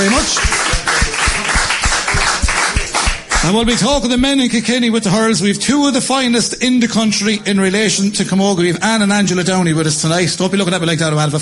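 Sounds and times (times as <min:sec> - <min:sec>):
speech: 0:00.0 - 0:00.5, 0:03.5 - 0:11.4
crowd applauding: 0:00.0 - 0:04.3.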